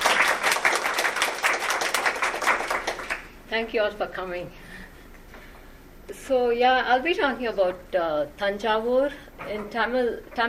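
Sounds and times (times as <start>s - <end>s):
audience applause welcoming a speaker: 0.0s - 3.3s
speech: 3.5s - 4.6s, 6.1s - 10.4s.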